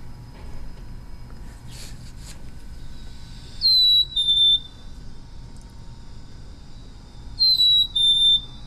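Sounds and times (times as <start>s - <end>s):
low steady rumble: 0.0s - 8.6s
chickadee mating call two-note whistle: 3.6s - 4.9s, 7.4s - 8.6s.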